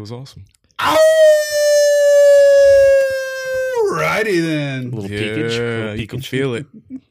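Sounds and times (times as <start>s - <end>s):
speech: 0.0s - 1.5s, 3.9s - 7.0s
person imitating a wolf howl: 0.8s - 4.2s.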